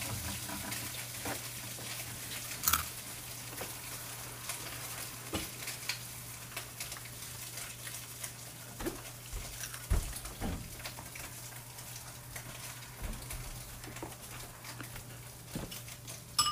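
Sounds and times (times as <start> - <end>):
Spam frying in a pan: 0.0 - 16.4.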